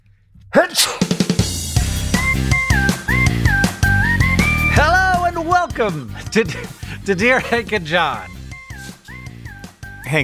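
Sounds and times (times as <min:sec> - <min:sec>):
speech: 0:00.6 - 0:01.0, 0:05.8 - 0:08.4
sneeze: 0:00.6 - 0:01.2
upbeat music with bright sustained tones: 0:01.3 - 0:10.2.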